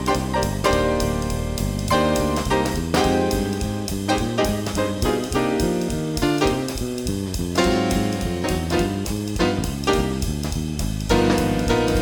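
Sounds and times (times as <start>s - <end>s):
brass playing C minor blues: 0.0s - 10.2s, 11.1s - 11.9s.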